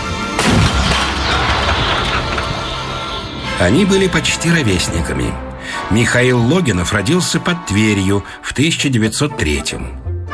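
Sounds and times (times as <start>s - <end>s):
artillery gun firing a shot: 0.3s - 3.4s
speech: 3.6s - 10.1s.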